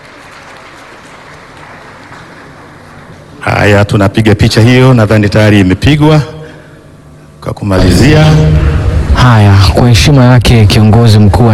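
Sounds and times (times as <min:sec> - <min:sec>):
audience clapping at a Tanzanian ceremony: 0:00.0 - 0:03.1
speech: 0:03.6 - 0:06.4, 0:07.4 - 0:11.5.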